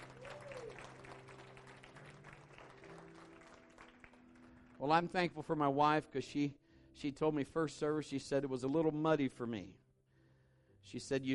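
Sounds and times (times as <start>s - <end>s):
audience applauding: 0.0s - 5.1s
low musical tones: 0.0s - 7.5s
speech: 4.8s - 9.8s, 10.8s - 11.3s.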